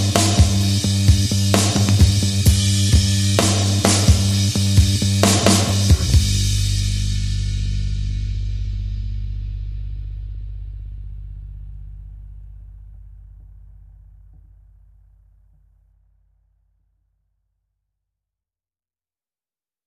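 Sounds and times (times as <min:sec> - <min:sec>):
drums: 0:00.0 - 0:10.6
bass: 0:00.0 - 0:18.2.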